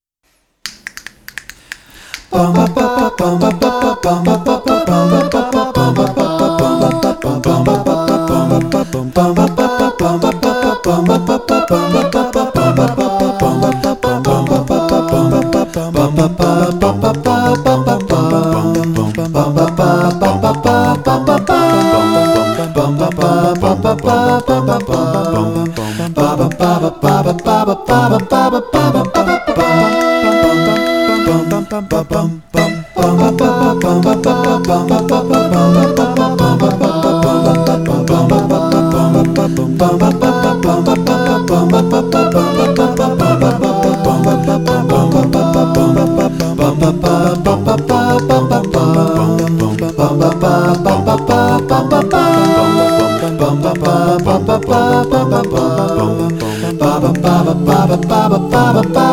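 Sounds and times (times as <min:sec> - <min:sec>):
a cappella singing: 0:01.9 - 0:59.1.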